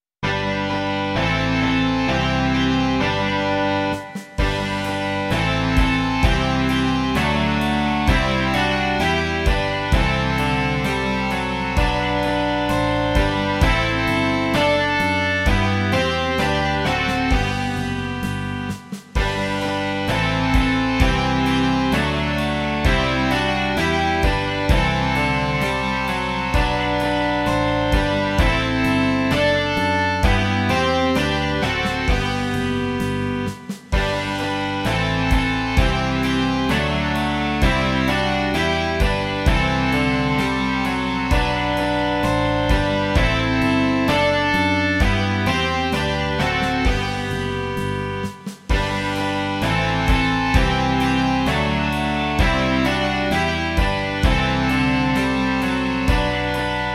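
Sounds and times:
rock music: 0.2s - 56.9s.

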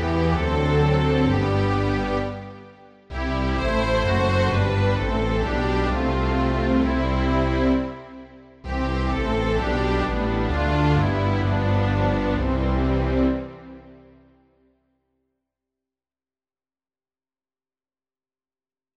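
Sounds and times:
string orchestra: 0.0s - 14.4s.

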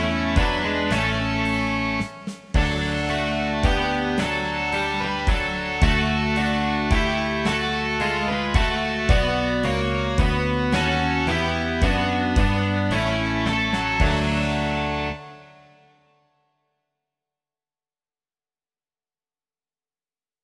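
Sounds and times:
rock music: 0.0s - 15.7s.

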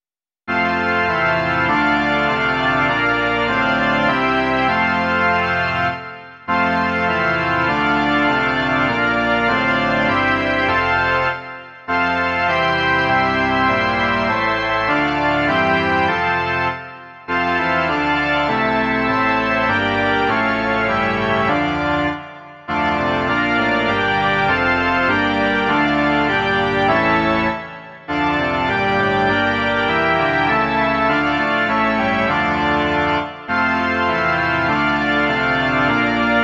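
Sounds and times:
organ: 0.5s - 36.4s.

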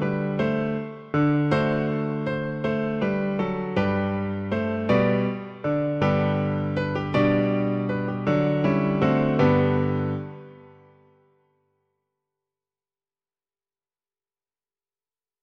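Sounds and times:
piano version of a Christmas carol: 0.0s - 11.2s.

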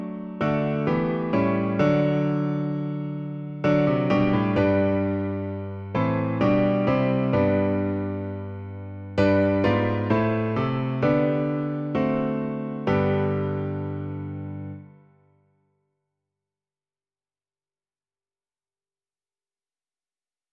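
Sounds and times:
piano version: 0.0s - 15.0s.

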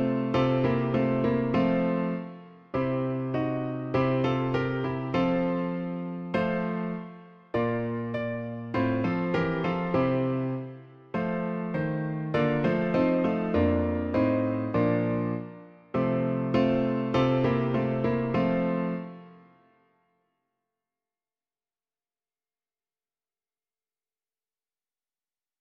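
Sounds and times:
hymn played on piano: 0.0s - 19.6s.

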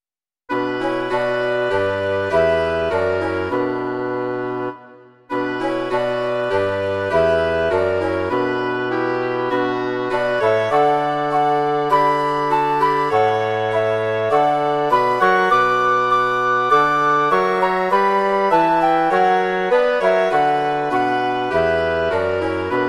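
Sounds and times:
wind quartet playing: 0.5s - 22.8s.

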